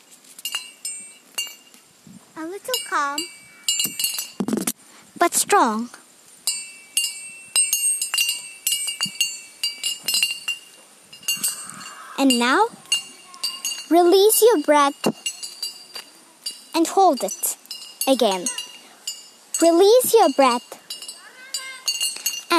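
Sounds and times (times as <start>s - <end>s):
speech: 2.4s - 3.4s, 5.2s - 6.0s, 12.2s - 12.8s, 13.9s - 15.2s, 16.8s - 17.5s, 18.1s - 18.6s, 19.6s - 20.8s
meditation bell ringing: 2.7s - 4.4s, 6.4s - 14.0s, 14.6s - 22.5s.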